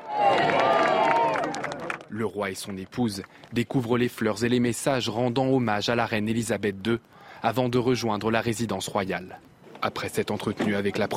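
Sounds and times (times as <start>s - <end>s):
crowd cheering with raised voices: 0.0s - 2.1s
large crowd applauding: 0.0s - 3.7s
speech: 2.1s - 11.1s.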